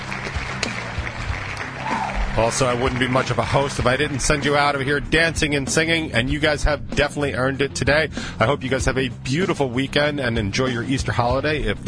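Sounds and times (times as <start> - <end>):
applause: 0.0 - 4.8
speech: 2.4 - 11.8.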